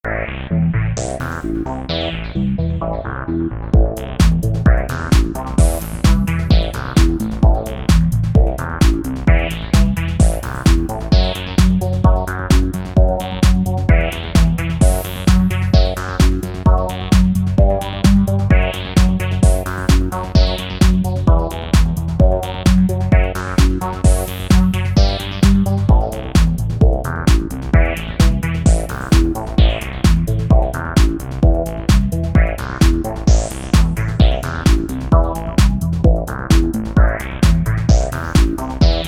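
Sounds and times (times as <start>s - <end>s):
electro mix: 0.0s - 39.0s.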